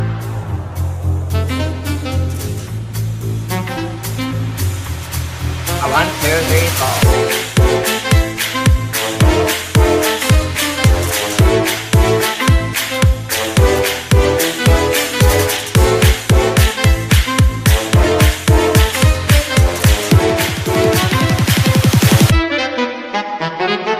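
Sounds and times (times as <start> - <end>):
electronic cyber jazz music: 0.0 - 23.9.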